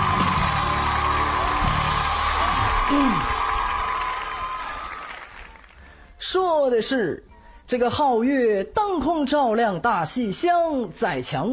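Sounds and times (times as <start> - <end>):
audience applause: 0.0 - 5.9
speech: 2.9 - 3.3, 6.8 - 11.5.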